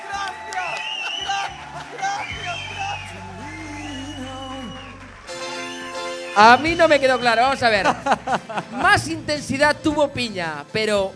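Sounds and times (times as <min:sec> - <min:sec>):
applause: 0:00.0 - 0:08.6
speech: 0:06.4 - 0:11.1
laughter: 0:07.6 - 0:09.1.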